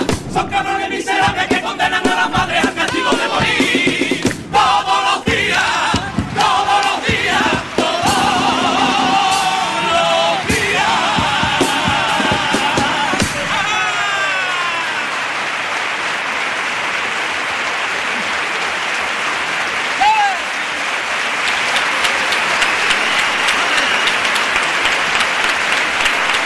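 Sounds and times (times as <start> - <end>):
theatre audience applause: 0.1 - 26.4
cheers and whistles: 12.2 - 15.3, 19.9 - 26.4.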